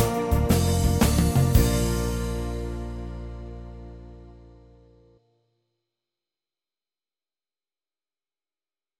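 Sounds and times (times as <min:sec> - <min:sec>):
organ instrument: 0:00.0 - 0:05.1.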